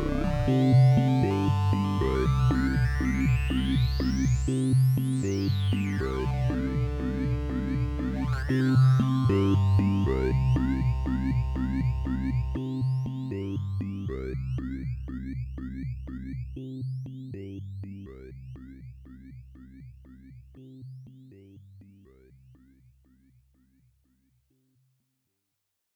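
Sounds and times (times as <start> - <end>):
Xenophone hyper synth lead: 0.0 - 15.7.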